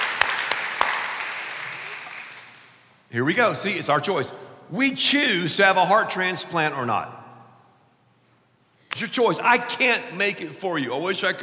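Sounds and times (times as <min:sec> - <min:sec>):
audience clapping: 0:00.0 - 0:02.9
speech: 0:03.1 - 0:07.2, 0:09.0 - 0:11.4.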